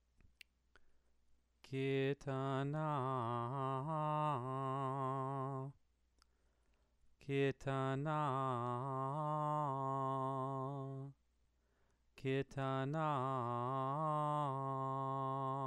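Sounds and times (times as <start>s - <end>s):
person chanting scripture: 1.6s - 5.8s, 7.2s - 11.2s, 12.2s - 15.6s.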